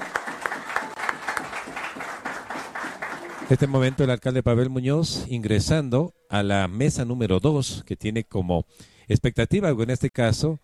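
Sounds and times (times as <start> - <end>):
audience applause welcoming the mayor of Quito: 0.0 - 4.2
speech: 3.5 - 10.6.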